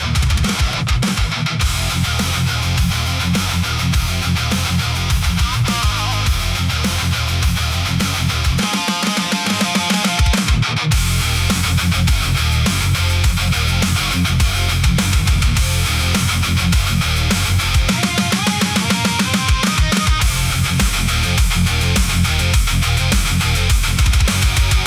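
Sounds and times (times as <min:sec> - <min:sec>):
powerful hard rock music: 0:00.0 - 0:24.8.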